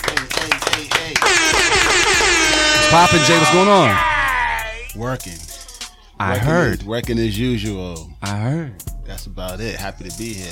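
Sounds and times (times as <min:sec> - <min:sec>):
sharp hand claps: 0:00.0 - 0:02.2
speech: 0:02.9 - 0:04.1, 0:05.0 - 0:05.5, 0:06.2 - 0:10.5.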